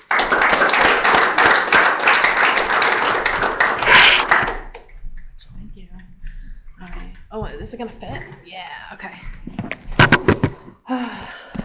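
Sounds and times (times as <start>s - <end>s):
audience applause at a recovery meeting welcoming a speaker: 0.0s - 4.8s
speech: 7.7s - 9.4s.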